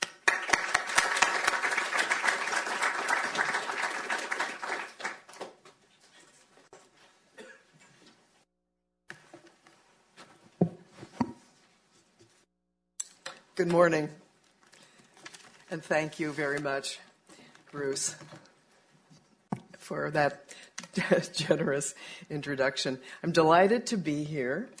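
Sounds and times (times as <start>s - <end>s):
audience applause welcoming a speaker to a panel: 0.0s - 5.6s
speech: 13.6s - 14.2s, 15.7s - 17.1s, 17.7s - 18.4s, 19.9s - 24.7s.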